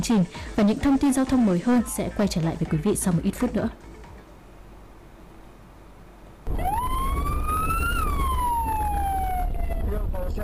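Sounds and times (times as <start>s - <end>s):
speech: 0.0s - 3.9s
ambulance siren wailing: 6.5s - 10.2s.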